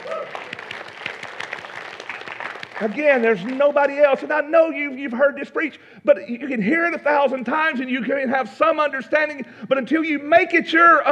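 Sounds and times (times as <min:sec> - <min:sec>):
soft golf clap from audience: 0:00.0 - 0:04.3
speech: 0:02.8 - 0:11.0.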